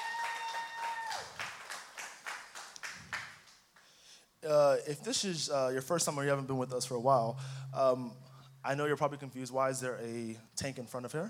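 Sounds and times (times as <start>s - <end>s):
audience applause: 0.0s - 3.6s
speech: 4.4s - 11.2s.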